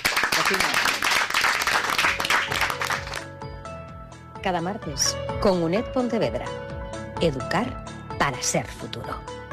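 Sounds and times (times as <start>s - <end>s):
audience applause: 0.0s - 3.2s
speech: 0.5s - 0.9s, 4.4s - 6.6s, 7.2s - 9.4s.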